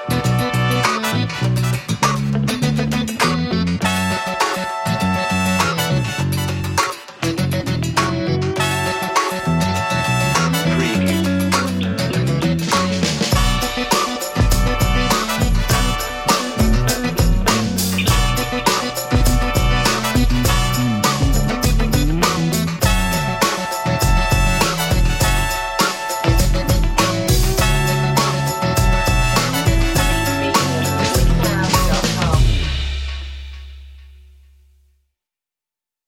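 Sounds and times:
funk music: 0.0 - 34.2.

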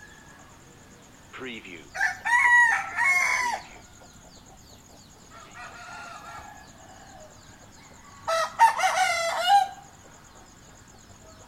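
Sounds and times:
two roosters crowing: 0.0 - 11.4
speech: 1.4 - 2.3.

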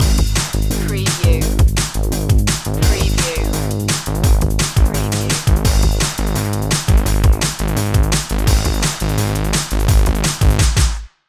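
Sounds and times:
spacey loop: 0.0 - 10.6.

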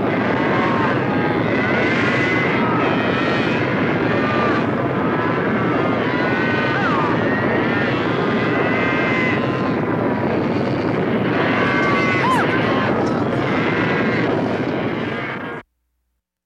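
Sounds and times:
cattle stampede: 0.0 - 15.4.

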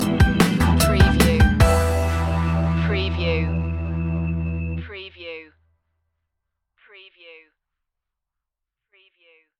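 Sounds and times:
latin music stinger: 0.0 - 4.9.

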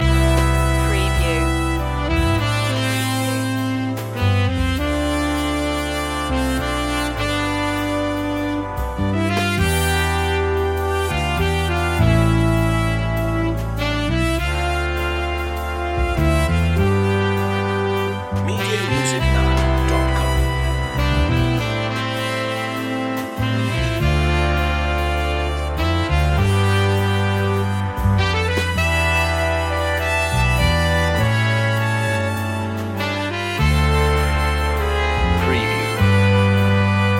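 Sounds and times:
romantic big band music loop: 0.0 - 37.1.

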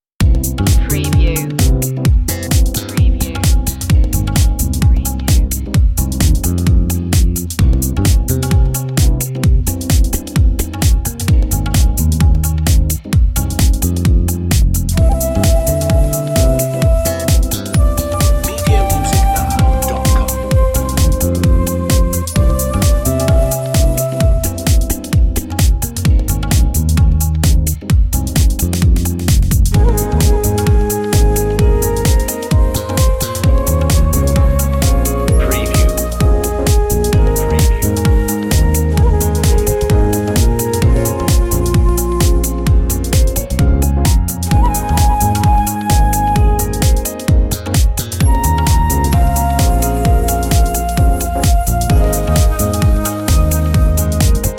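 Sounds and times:
ethnic nightlife music: 0.2 - 54.5.

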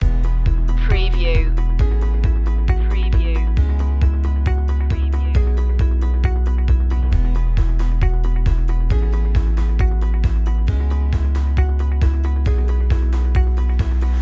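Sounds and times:
upbeat impact loop: 0.0 - 14.2.

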